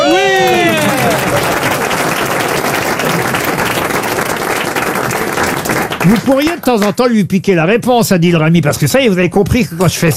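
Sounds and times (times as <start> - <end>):
audience applause: 0.0 - 7.0
speech: 6.1 - 10.1.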